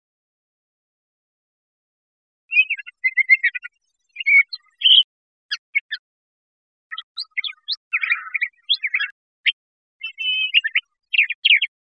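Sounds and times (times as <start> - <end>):
Crissal thrasher singing: 2.5 - 6.1, 6.9 - 11.8.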